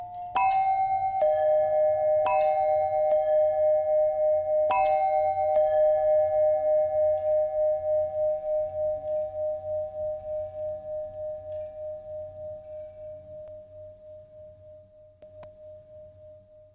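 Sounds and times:
long bell bend threads: 0.0 - 16.7.

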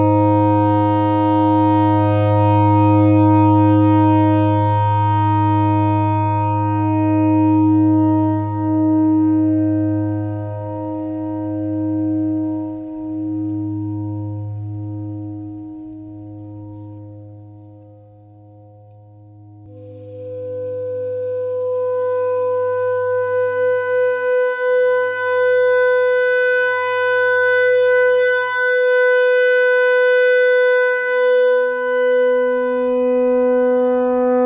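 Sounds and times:
clarinet notes in a pentatonic scale: 0.0 - 17.7, 19.7 - 34.4.

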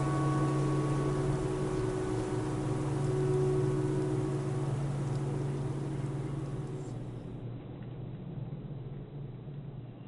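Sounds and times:
tornado siren: 0.0 - 7.2.

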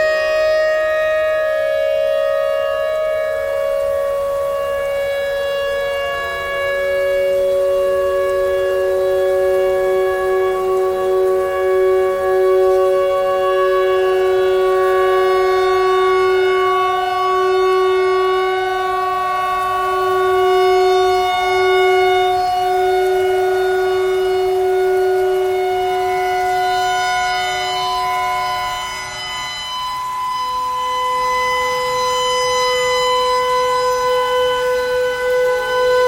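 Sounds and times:
clarinet notes: 0.0 - 36.0
tornado siren: 0.0 - 36.0.

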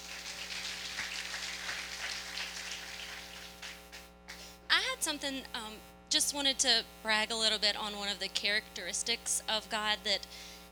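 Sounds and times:
audience clapping: 0.0 - 4.0
speech: 5.0 - 10.5.

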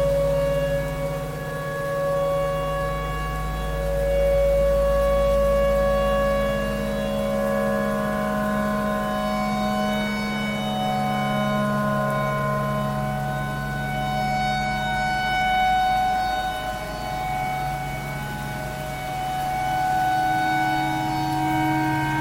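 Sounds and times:
clarinet imitating a tornado siren: 0.0 - 22.1.

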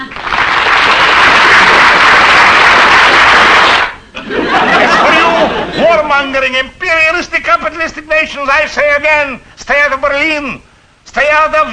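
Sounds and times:
audience applause: 0.0 - 4.0
laughter: 4.1 - 6.2
speech: 6.2 - 11.7.

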